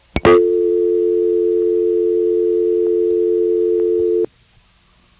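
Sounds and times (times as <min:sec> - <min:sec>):
telephone exchange callback ticking tone: 0:00.2 - 0:04.3.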